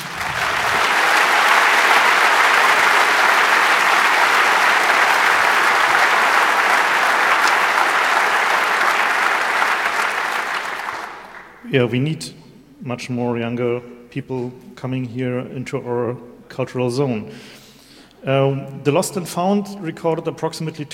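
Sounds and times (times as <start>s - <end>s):
round of applause: 0.0s - 11.6s
speech: 11.7s - 17.6s, 18.2s - 20.9s.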